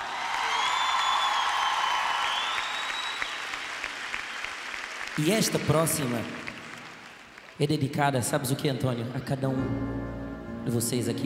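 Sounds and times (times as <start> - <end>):
audience applause: 0.0 - 7.6
speech: 5.2 - 6.4, 7.6 - 11.2.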